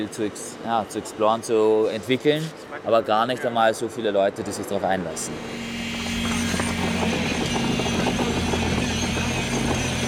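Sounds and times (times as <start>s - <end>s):
speech: 0.0s - 5.9s
electric vibrating rods compacting clay in formwork: 5.2s - 10.0s.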